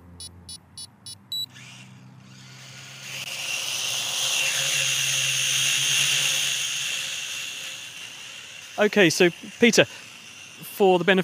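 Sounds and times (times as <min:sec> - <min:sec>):
small hobby drone flying overhead: 0:00.0 - 0:11.2
quick electronic beeps: 0:00.2 - 0:01.5
speech: 0:08.8 - 0:10.0, 0:10.8 - 0:11.2.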